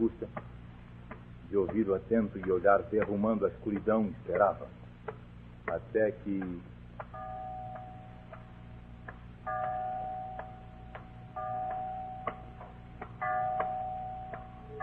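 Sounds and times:
speech: 0:00.0 - 0:00.4, 0:01.6 - 0:04.8, 0:05.7 - 0:06.7
clock ticking: 0:00.0 - 0:14.8
clock striking midnight: 0:07.1 - 0:14.8.

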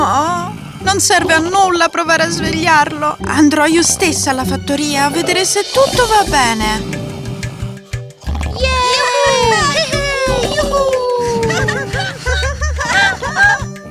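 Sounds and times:
speech: 0:00.9 - 0:07.0, 0:08.6 - 0:09.9
children making noise in a house: 0:08.6 - 0:12.3
laughter: 0:08.9 - 0:13.8.

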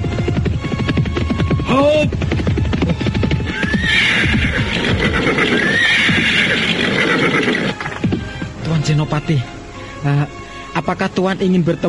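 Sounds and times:
hooves clopping: 0:00.0 - 0:09.1
speech: 0:01.7 - 0:02.2, 0:08.8 - 0:11.8
horse neighing: 0:02.8 - 0:08.0.

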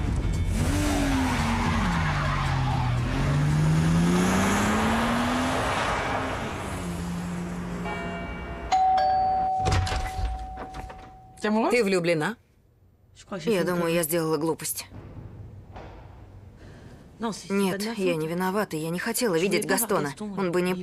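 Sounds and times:
car engine roaring as it pulls away: 0:00.0 - 0:08.6
car tires screeching: 0:00.4 - 0:08.0
sharp bell-like chime: 0:07.8 - 0:11.4
speech: 0:11.4 - 0:12.4, 0:13.2 - 0:15.0, 0:17.2 - 0:20.8.

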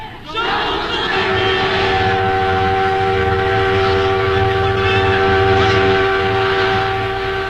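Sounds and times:
train horn: 0:00.5 - 0:07.4.

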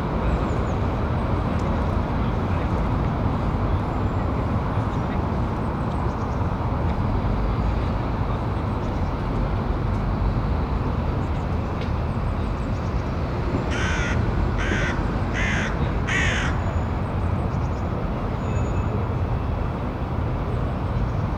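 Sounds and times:
steady low roar of car traffic: 0:00.0 - 0:21.3
crow cawing: 0:13.7 - 0:16.6.

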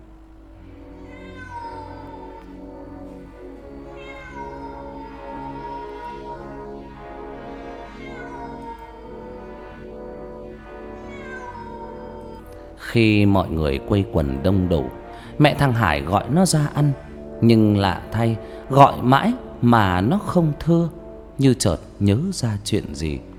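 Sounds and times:
cat wailing mournfully: 0:00.9 - 0:02.6, 0:03.6 - 0:09.8, 0:10.9 - 0:12.7
speech: 0:12.9 - 0:23.3.

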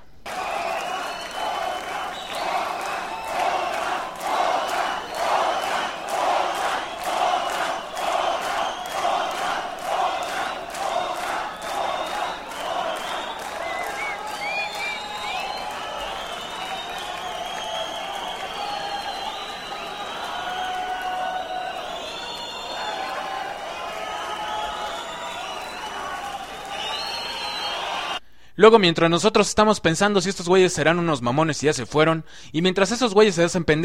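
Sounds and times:
concert crowd clapping in rhythm: 0:00.2 - 0:28.2
speech: 0:28.6 - 0:33.8.

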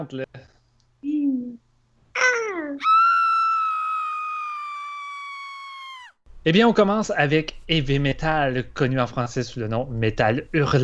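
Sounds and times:
speech: 0:00.0 - 0:00.4, 0:06.4 - 0:10.8
woman screaming as a segment sound effect: 0:02.2 - 0:06.2
woman's short low cry and wavering yelp: 0:02.2 - 0:06.2.

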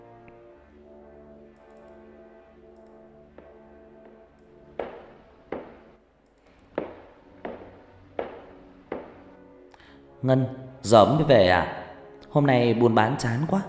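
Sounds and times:
high heels clattering footsteps at night: 0:04.8 - 0:05.8, 0:06.7 - 0:09.2
speech: 0:10.2 - 0:11.8, 0:12.4 - 0:13.6.

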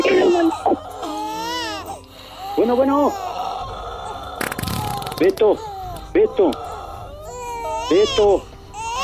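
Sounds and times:
newborn baby girl crying: 0:00.0 - 0:09.0
speech: 0:02.7 - 0:03.3, 0:05.2 - 0:06.7, 0:07.9 - 0:08.5.

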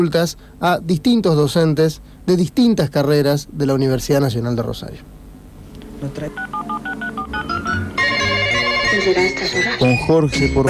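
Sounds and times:
speech: 0:00.0 - 0:05.2, 0:06.0 - 0:07.9, 0:09.0 - 0:10.6
telephone ringing on a call from a radio station: 0:06.3 - 0:09.9
telephone keypad beeps: 0:06.4 - 0:07.8.

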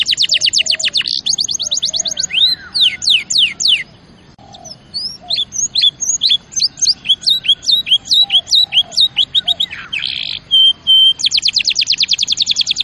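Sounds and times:
canary singing: 0:00.0 - 0:12.8.

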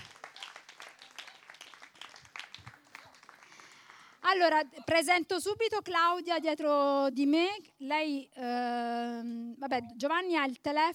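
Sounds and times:
audience applause: 0:00.0 - 0:04.1
speech: 0:04.3 - 0:10.9.

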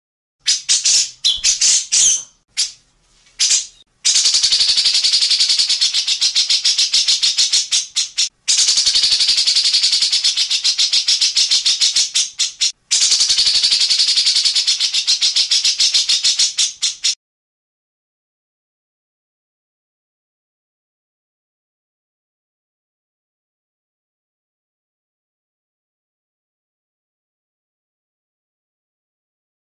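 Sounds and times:
grey-cheeked bulbul harsh rattling song: 0:00.4 - 0:02.8, 0:03.4 - 0:17.2.

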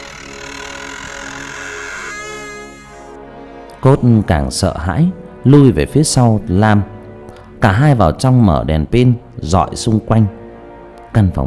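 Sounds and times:
creaking door opening: 0:00.0 - 0:03.2
speech: 0:03.8 - 0:06.9, 0:07.6 - 0:10.4, 0:11.1 - 0:11.4.

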